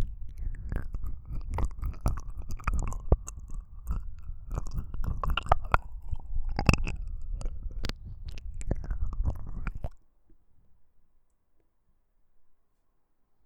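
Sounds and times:
ASMR ear licking sounds: 0.0s - 10.0s.

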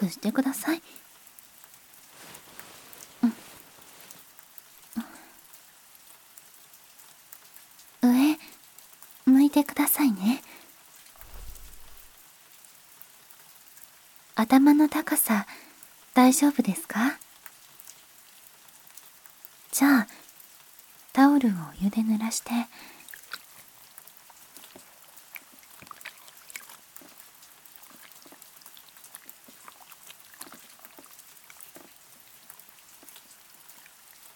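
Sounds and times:
rain sounds: 0.0s - 34.3s
ear massage ASMR: 2.0s - 4.3s, 11.2s - 12.2s.

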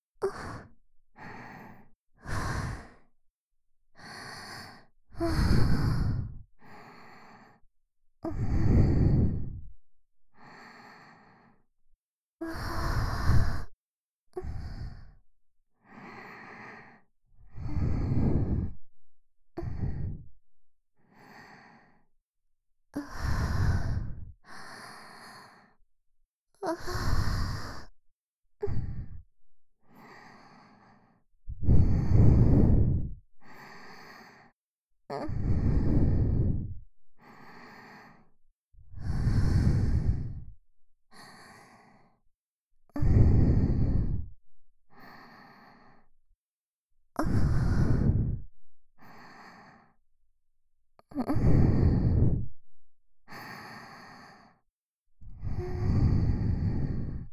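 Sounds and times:
sweet breathing loop: 0.2s - 3.1s, 4.0s - 7.6s, 8.3s - 9.7s, 10.4s - 11.7s, 12.4s - 13.7s, 14.4s - 15.2s, 15.8s - 18.9s, 19.6s - 20.3s, 21.0s - 22.1s, 23.0s - 25.8s, 26.6s - 27.9s, 29.9s - 34.6s, 35.3s - 38.3s, 39.0s - 40.5s, 41.1s - 42.2s, 43.0s - 46.1s, 47.2s - 50.0s, 51.2s - 52.5s, 53.3s - 54.6s, 55.4s - 57.3s.

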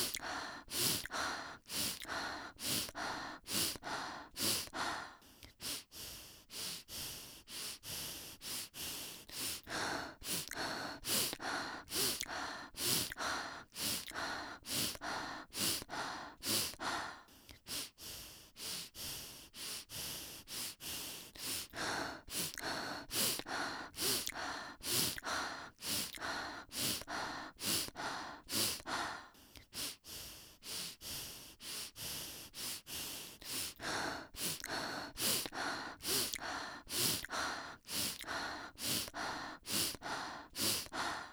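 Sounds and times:
person breathing through nose and mouth: 0.0s - 41.3s.

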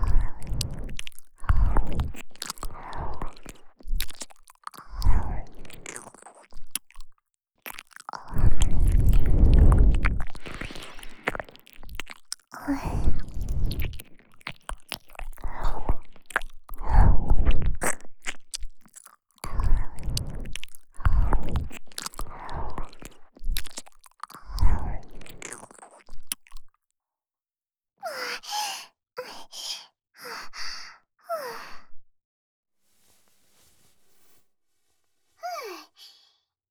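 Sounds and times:
ear licking sounds in the right ear: 0.0s - 26.8s.

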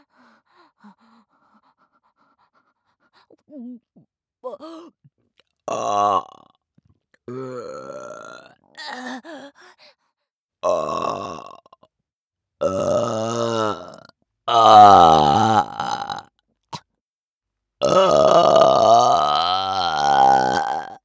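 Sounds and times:
person burping: 5.7s - 6.4s, 7.3s - 9.2s, 10.6s - 11.6s, 12.6s - 16.2s, 17.8s - 21.0s.

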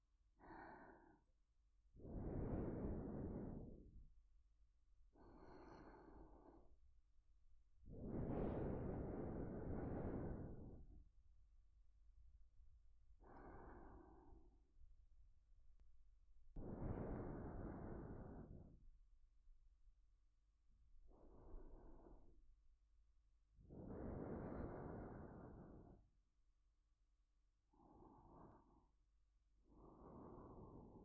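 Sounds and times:
looped sleeping breath: 0.4s - 1.2s, 2.0s - 4.2s, 5.1s - 6.8s, 7.9s - 11.1s, 13.2s - 14.6s, 16.6s - 18.8s, 21.1s - 22.4s, 23.7s - 26.1s, 27.7s - 31.0s.

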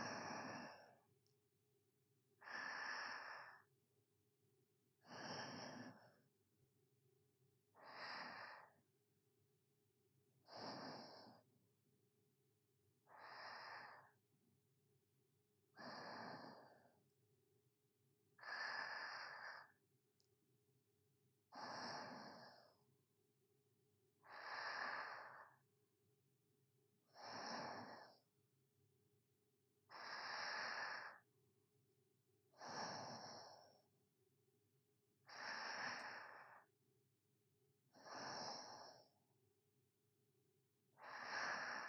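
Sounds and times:
sleeping breathing ASMR: 0.0s - 1.0s, 2.4s - 3.7s, 5.0s - 6.2s, 7.8s - 8.8s, 10.5s - 11.5s, 13.0s - 14.2s, 15.8s - 17.0s, 18.4s - 19.8s, 21.6s - 22.8s, 24.2s - 25.6s, 27.2s - 28.3s, 29.9s - 31.2s, 32.6s - 33.9s, 35.2s - 36.7s, 37.9s - 39.2s, 41.0s - 41.8s.

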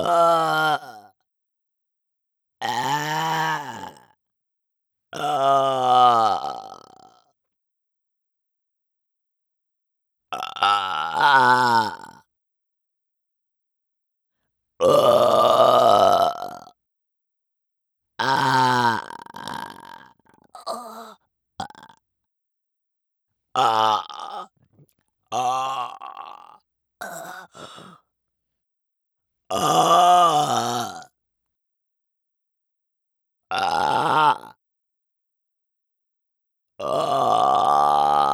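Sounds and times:
person burping: 0.0s - 1.0s, 2.6s - 4.0s, 5.2s - 7.1s, 10.3s - 12.2s, 14.8s - 16.7s, 18.2s - 22.0s, 23.6s - 24.5s, 25.3s - 28.0s, 29.5s - 31.1s, 33.5s - 34.5s, 36.8s - 38.3s.

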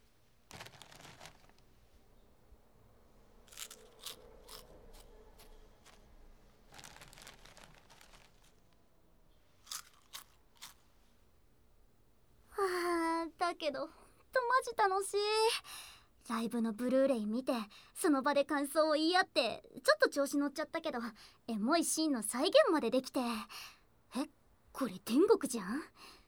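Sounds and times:
potato chips being eaten: 0.5s - 1.6s, 3.4s - 8.6s, 9.6s - 10.9s
speech: 13.6s - 14.0s, 14.6s - 26.2s.

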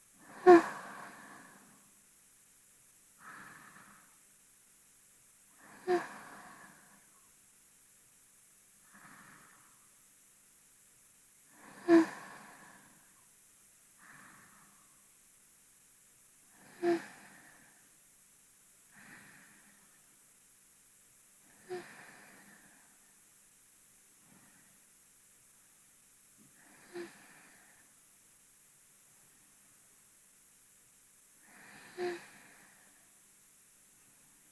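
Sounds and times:
person breathing in sleep, binaural: 0.2s - 2.0s, 3.2s - 4.3s, 5.5s - 7.2s, 8.8s - 10.0s, 11.5s - 13.2s, 14.0s - 15.1s, 16.5s - 18.0s, 18.9s - 20.0s, 21.4s - 23.1s, 24.2s - 24.8s, 26.5s - 28.0s, 31.4s - 33.2s.

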